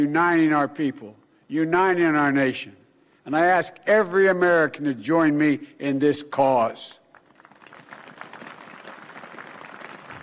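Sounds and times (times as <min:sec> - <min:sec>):
speech: 0:00.0 - 0:07.0
tepid applause from a crowd: 0:07.1 - 0:10.2.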